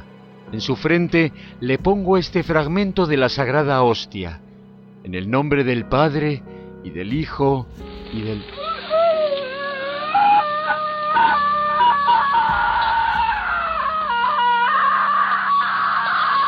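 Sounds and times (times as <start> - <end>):
speech: 0.5 - 4.4, 5.0 - 8.6
woman screaming in terror: 8.6 - 16.4.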